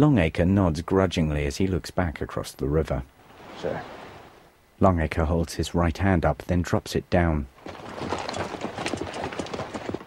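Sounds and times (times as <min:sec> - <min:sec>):
speech: 0:00.0 - 0:04.0, 0:04.8 - 0:08.2
cavalry horses' hoof strikes on stone of a rocky riverbank: 0:07.6 - 0:10.0.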